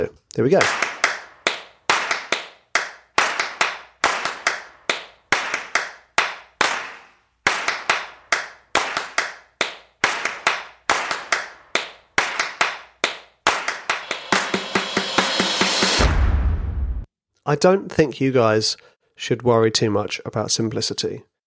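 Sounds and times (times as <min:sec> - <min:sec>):
speech: 0:00.0 - 0:00.8, 0:17.5 - 0:21.3
programmed hand claps and finger snaps: 0:00.6 - 0:14.6
deep bass hit: 0:15.9 - 0:17.1.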